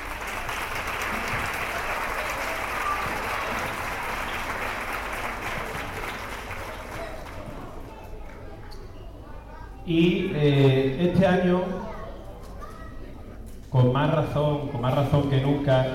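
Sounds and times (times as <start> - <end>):
audience applause: 0.0 - 7.9
speech: 9.9 - 11.8, 13.9 - 15.9.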